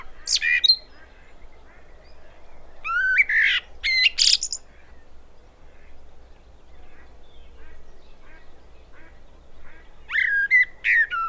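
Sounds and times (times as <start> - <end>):
common blackbird singing: 0.0 - 1.4, 2.8 - 4.7, 10.1 - 11.2.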